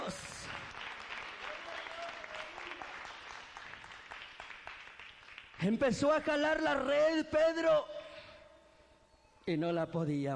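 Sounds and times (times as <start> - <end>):
crowd applauding: 0.0 - 6.3
speech: 5.6 - 7.9, 9.5 - 10.3.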